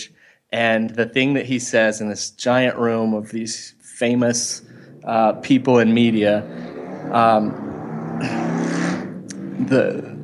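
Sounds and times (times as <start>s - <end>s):
speech: 0.5s - 8.4s, 9.6s - 10.1s
motorcycle passing by: 4.1s - 10.2s.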